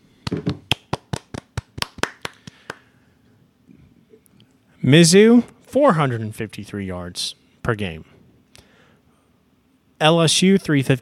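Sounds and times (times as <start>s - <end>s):
hands clapping: 0.2s - 2.9s
speech: 4.8s - 8.1s, 10.0s - 11.0s.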